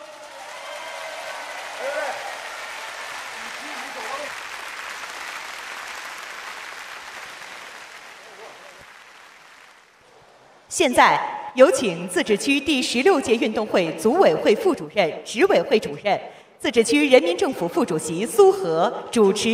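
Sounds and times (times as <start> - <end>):
warm applause from ceremony audience: 0.0 - 10.6
speech: 10.8 - 19.5.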